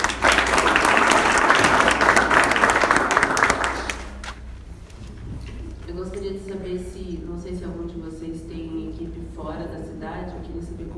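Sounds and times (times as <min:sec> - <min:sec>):
crowd applauding: 0:00.0 - 0:04.3.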